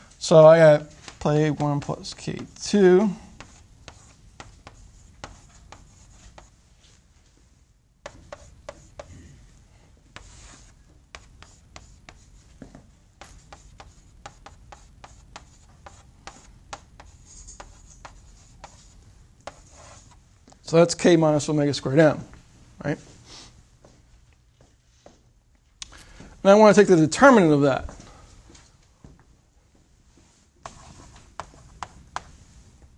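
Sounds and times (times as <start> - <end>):
speech: 0.3 - 3.2, 20.7 - 23.2, 26.4 - 28.0
handwriting scratching strokes writing a matrix equation: 3.4 - 6.6, 8.0 - 9.2, 10.2 - 12.5, 13.2 - 20.2, 30.6 - 32.4.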